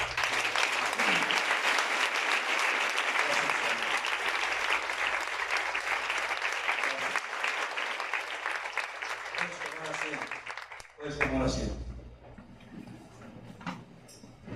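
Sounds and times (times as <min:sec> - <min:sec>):
audience applause: 0:00.0 - 0:11.6.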